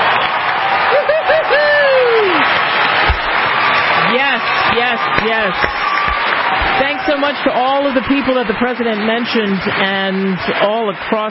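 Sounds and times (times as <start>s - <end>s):
applause from a live studio audience: 0.0s - 11.2s
laughter: 0.9s - 2.4s
speech: 5.2s - 5.8s, 7.1s - 11.2s.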